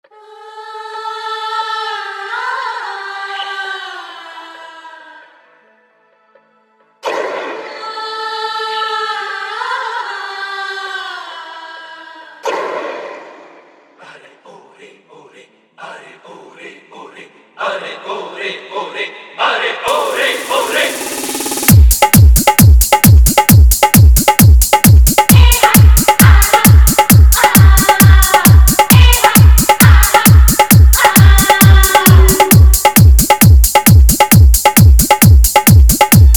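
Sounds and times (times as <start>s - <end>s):
old Hindi dholak bass mix: 19.9s - 36.3s.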